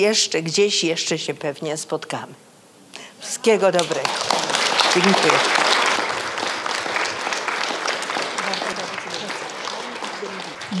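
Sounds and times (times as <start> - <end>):
speech: 0.0 - 2.5, 3.2 - 5.6
audience applause: 3.6 - 10.7.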